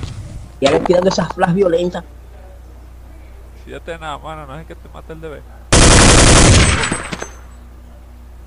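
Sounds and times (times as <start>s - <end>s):
speech: 0.7s - 2.2s, 3.7s - 5.6s
rapid automatic gunfire in a tactical shooter video game: 5.7s - 7.4s.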